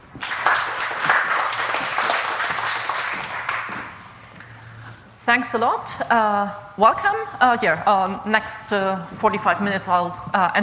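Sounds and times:
audience applause welcoming a speaker at a software development conference: 0.0s - 4.1s
speech: 5.3s - 10.6s.

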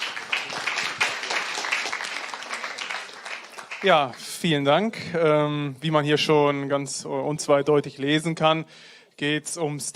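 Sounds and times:
audience applause: 0.0s - 4.3s
speech: 3.8s - 9.9s.

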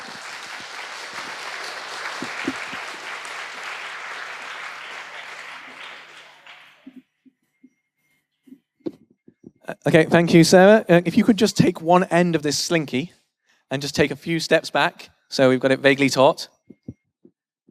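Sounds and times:
audience applause: 0.0s - 7.0s
speech: 9.8s - 16.6s.

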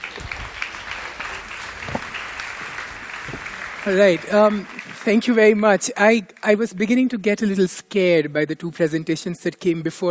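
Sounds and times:
audience applause: 0.0s - 5.5s
speech: 3.9s - 10.0s.

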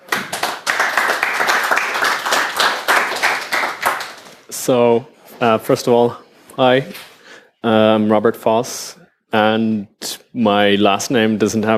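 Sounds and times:
audience applause: 0.0s - 4.4s
speech: 4.7s - 11.7s.

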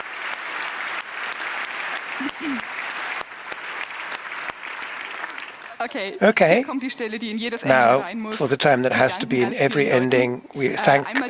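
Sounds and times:
crowd clapping: 0.0s - 11.2s
laughter: 2.1s - 2.9s, 5.7s - 11.2s
speech: 2.2s - 2.7s, 5.8s - 11.2s.

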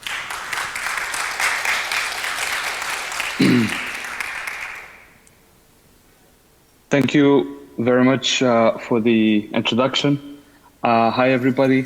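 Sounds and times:
audience applause: 0.0s - 5.2s
speech: 3.4s - 3.8s, 6.9s - 11.8s.

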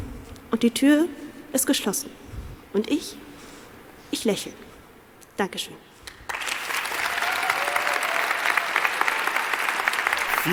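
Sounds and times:
speech: 0.5s - 3.2s, 4.1s - 4.7s, 5.4s - 5.9s
live audience applause: 6.3s - 10.5s.

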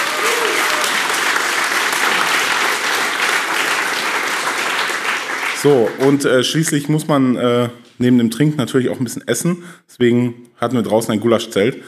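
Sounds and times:
audience applause: 0.0s - 6.3s
speech: 5.6s - 11.8s.

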